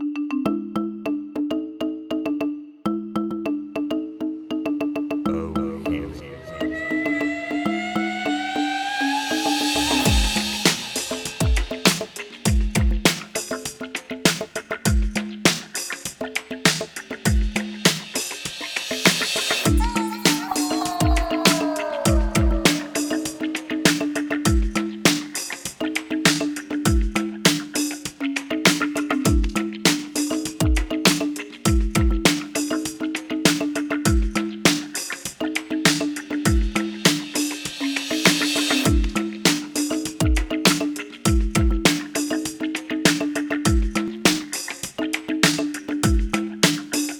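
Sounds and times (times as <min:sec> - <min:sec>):
conga drumming: 0:00.2 - 0:47.1.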